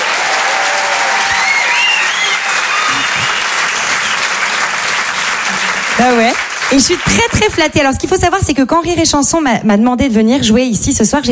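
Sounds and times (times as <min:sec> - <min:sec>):
faint whoops and cheers: 0:00.0 - 0:04.4
crowd applauding: 0:00.0 - 0:07.8
speech: 0:06.0 - 0:11.2.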